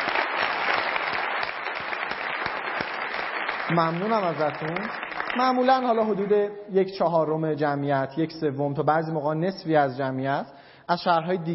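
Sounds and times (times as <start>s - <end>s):
sustained audience applause: 0.0s - 6.4s
speech: 3.7s - 11.5s.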